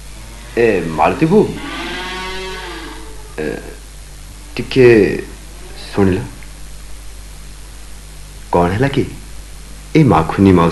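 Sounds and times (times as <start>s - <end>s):
bullocks lowing: 0.0s - 8.4s
speech: 0.6s - 1.8s, 3.4s - 3.8s, 4.6s - 5.3s, 5.9s - 6.3s, 8.5s - 9.2s, 10.0s - 10.6s.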